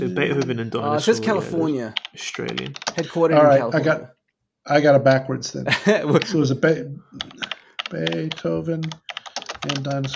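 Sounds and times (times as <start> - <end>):
speech: 0.0 - 9.0, 9.6 - 10.1
typing on a mechanical computer keyboard: 2.0 - 3.1, 7.2 - 10.1.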